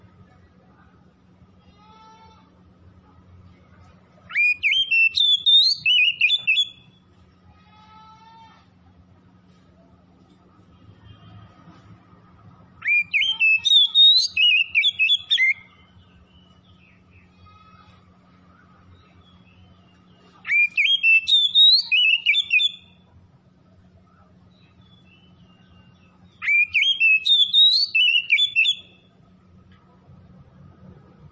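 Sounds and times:
Oriental magpie-robin singing whistled phrases: 4.3 - 7.0, 12.8 - 17.3, 19.0 - 23.0, 24.5 - 29.1.

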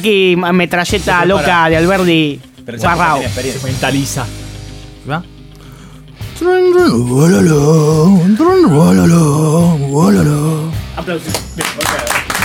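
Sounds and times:
speech: 0.0 - 4.4, 5.0 - 5.3, 6.4 - 12.2
applause: 11.3 - 12.4.

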